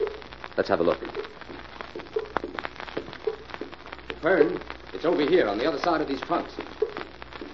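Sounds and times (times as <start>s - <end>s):
leaking faucet dripping into tin drain: 0.0s - 7.5s
speech: 0.6s - 1.2s, 4.2s - 6.7s.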